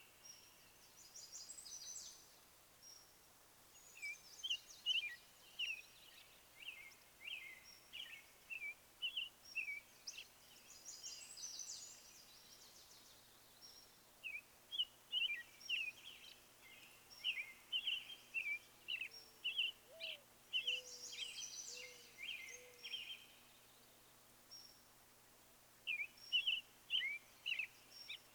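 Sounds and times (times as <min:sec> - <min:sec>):
real birds singing: 0:03.8 - 0:23.9, 0:25.9 - 0:28.3.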